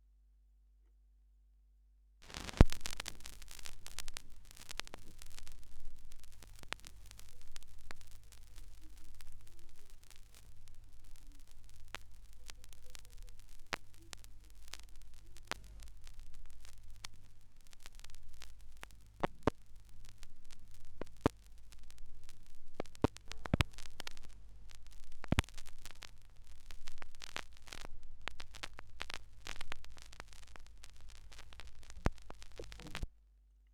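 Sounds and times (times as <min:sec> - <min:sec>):
vinyl record noise: 0:02.2 - 0:33.1.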